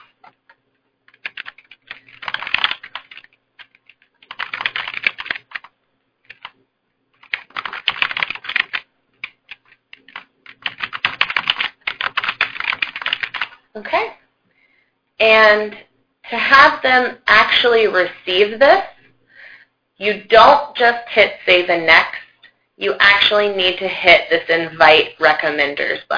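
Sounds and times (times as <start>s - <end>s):
typing referee names on a computer keyboard: 0.0s - 13.6s
speech: 13.8s - 14.2s, 15.2s - 18.9s, 20.0s - 22.1s, 22.8s - 26.1s.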